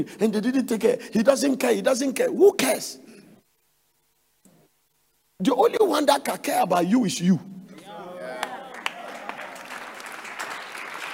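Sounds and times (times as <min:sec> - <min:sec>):
speech: 0:00.0 - 0:03.1, 0:05.4 - 0:07.6
audience applause: 0:08.1 - 0:11.1.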